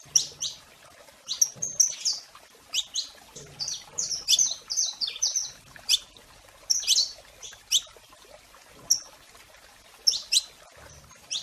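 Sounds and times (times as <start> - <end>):
domestic canary chirping and whistling: 1.3 - 6.1, 6.7 - 7.9, 10.0 - 10.6, 11.3 - 11.4.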